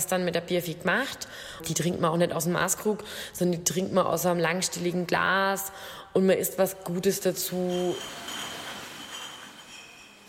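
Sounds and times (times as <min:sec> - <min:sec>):
speech: 0:00.0 - 0:08.5
brewery bottle filling line running: 0:07.6 - 0:10.2.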